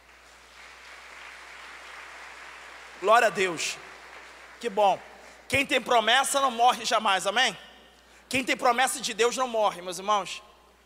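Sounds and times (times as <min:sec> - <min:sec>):
crowd applauding in a large room: 0:00.0 - 0:05.4
speech: 0:03.0 - 0:03.9, 0:04.6 - 0:07.7, 0:08.3 - 0:10.5.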